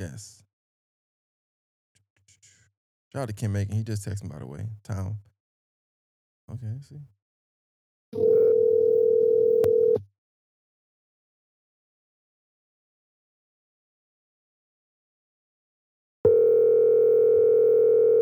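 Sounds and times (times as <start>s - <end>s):
speech: 0.0s - 0.4s, 3.1s - 5.3s, 6.5s - 7.2s, 8.1s - 8.4s
electronic ringback tones on an outgoing phone call: 8.2s - 10.0s, 16.3s - 18.2s.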